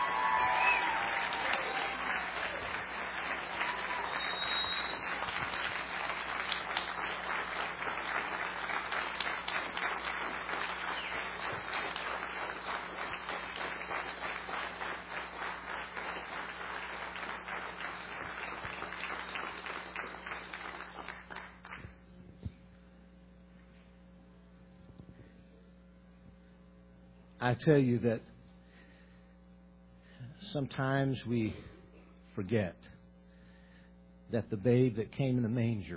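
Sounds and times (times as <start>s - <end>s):
large audience applause for a choir: 0.0s - 21.8s
speech: 27.4s - 28.3s, 30.5s - 31.7s, 32.4s - 32.8s, 34.3s - 35.9s.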